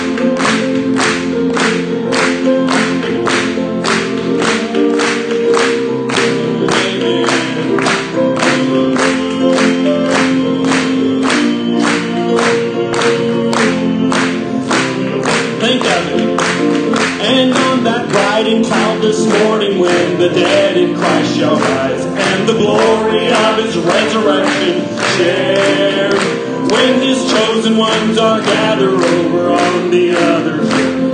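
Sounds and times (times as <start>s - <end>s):
audience clapping along in unison: 0.0s - 31.1s
instrumental music: 0.0s - 31.1s
sustained singing: 6.2s - 16.4s, 17.2s - 31.1s.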